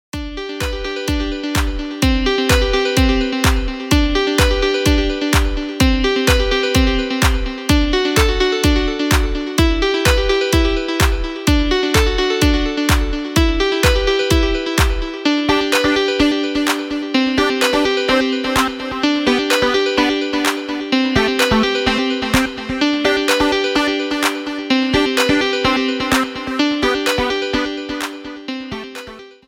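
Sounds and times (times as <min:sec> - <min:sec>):
music: 0:00.1 - 0:29.4.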